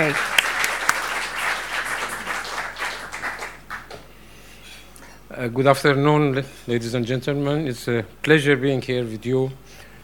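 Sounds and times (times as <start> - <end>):
speech: 0.0 - 0.4, 5.4 - 9.8
audience applause welcoming the Consul General of Iran: 0.0 - 4.0.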